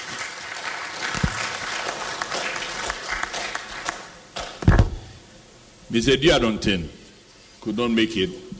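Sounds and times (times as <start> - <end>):
crowd applause: 0.0 - 4.6
speech: 5.9 - 7.0, 7.6 - 8.5.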